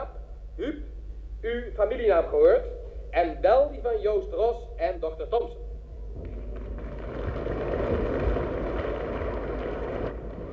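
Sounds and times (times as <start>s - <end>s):
speech: 1.4s - 5.6s
audience applause: 6.2s - 10.5s.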